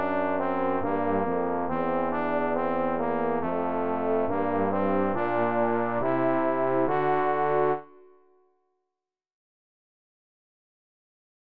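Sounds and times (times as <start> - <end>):
duet for trombones with accompaniment: 0.0 - 7.8.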